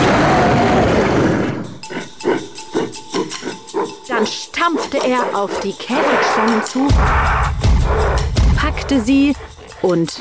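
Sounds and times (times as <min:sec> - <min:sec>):
gorilla roaring: 0:00.0 - 0:04.0, 0:04.8 - 0:08.4
gorilla panting grunts: 0:01.8 - 0:10.1
speech: 0:04.6 - 0:08.0, 0:08.6 - 0:10.1.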